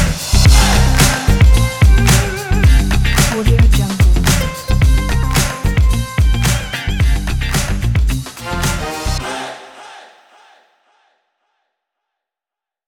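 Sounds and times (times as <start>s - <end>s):
funky opener music: 0.0s - 9.4s.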